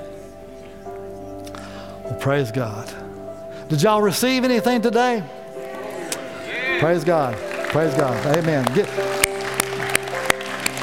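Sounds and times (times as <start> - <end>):
soft sustained musical tone: 0.0 - 10.8
speech: 2.1 - 3.1, 3.7 - 5.4, 6.8 - 9.1
audience clapping in unison: 6.8 - 10.8.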